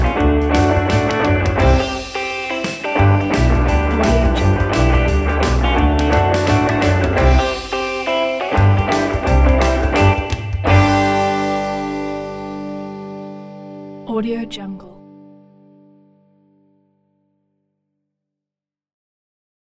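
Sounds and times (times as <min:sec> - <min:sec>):
50s rock boogie woogie music: 0:00.0 - 0:14.0.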